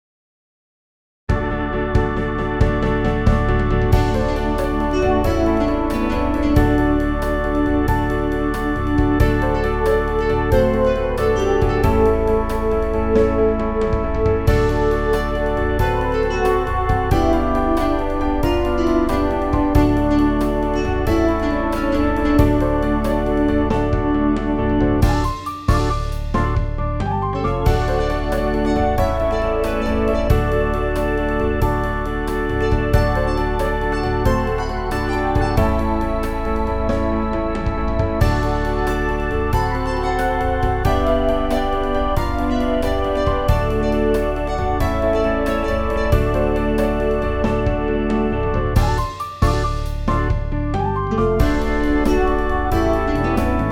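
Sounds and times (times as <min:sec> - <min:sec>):
blues instrumental: 0:01.3 - 0:53.6.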